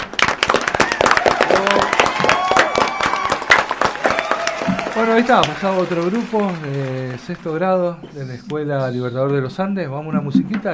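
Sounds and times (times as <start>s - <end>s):
audience applause: 0.0s - 8.0s
speech: 5.0s - 10.7s.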